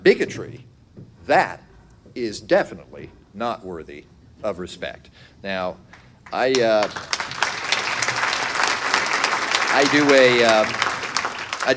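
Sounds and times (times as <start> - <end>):
speech: 0.0 - 0.7, 1.3 - 1.6, 2.2 - 7.6, 9.7 - 11.0
audience applause during a talk about religion and bigotry: 6.2 - 11.7.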